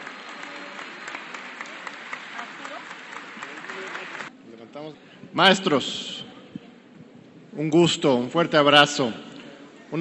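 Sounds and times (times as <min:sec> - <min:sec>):
audience applause: 0:00.0 - 0:04.3
speech: 0:04.7 - 0:06.2, 0:07.6 - 0:09.3.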